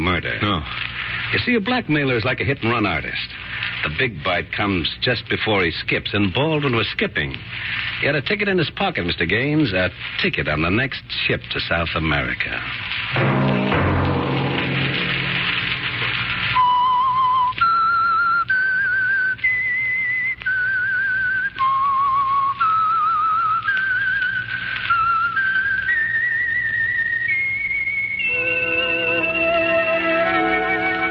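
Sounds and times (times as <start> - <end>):
speech: 0.1 - 13.5
low orchestral backing: 13.2 - 16.3, 28.2 - 31.0
whistled signal tune: 16.3 - 31.0.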